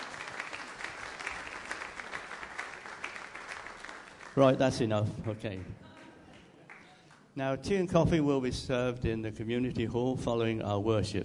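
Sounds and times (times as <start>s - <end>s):
audience applause: 0.0s - 7.0s
speech: 4.4s - 5.9s, 7.4s - 11.2s.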